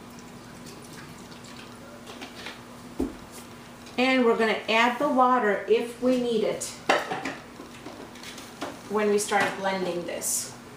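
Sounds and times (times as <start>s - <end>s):
vinegar and lemon juice trickling and dripping into a batch of food: 0.0s - 2.4s
speech: 4.0s - 6.8s, 8.9s - 10.6s.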